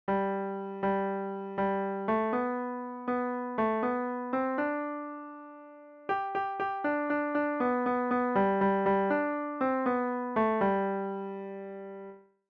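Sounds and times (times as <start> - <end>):
piano: 0.0 - 12.3.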